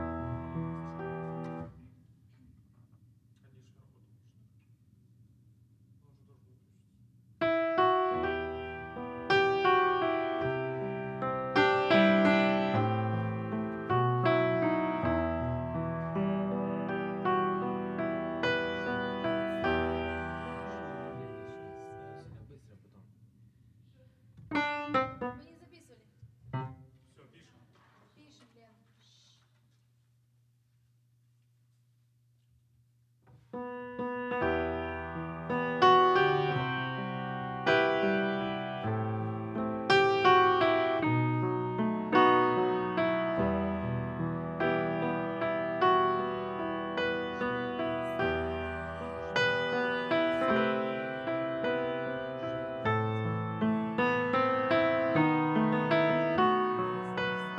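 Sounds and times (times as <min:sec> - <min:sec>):
piano: 0:00.0 - 0:02.0, 0:07.4 - 0:22.5, 0:24.3 - 0:25.6, 0:26.4 - 0:27.0, 0:33.3 - 0:57.5.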